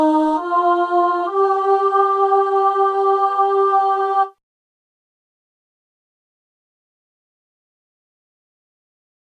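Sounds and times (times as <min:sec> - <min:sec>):
alto singing a carol in a minor key: 0:00.0 - 0:04.4.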